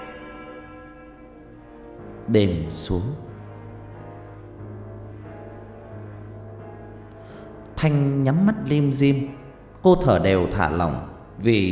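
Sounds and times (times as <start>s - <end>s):
antique western clock chiming in the corner of the house: 0.0s - 1.6s
speech: 2.3s - 3.3s, 7.8s - 11.7s.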